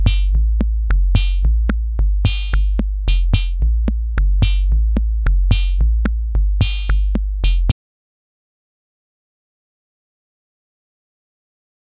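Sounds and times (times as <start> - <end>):
MFB-301 Pro drum machine beat with bass drum: 0.0 - 7.7.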